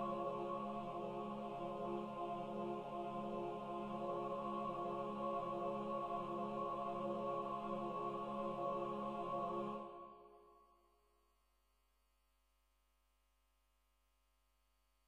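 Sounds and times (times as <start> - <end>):
choir singing: 0.0 - 10.4.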